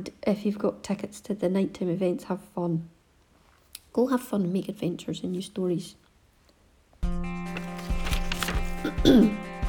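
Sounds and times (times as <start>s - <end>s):
speech: 0.0s - 3.0s, 3.9s - 6.0s, 9.0s - 9.4s
paper rustling as a sheet is turned over: 7.4s - 9.4s
gruff throat clearing: 8.8s - 9.5s.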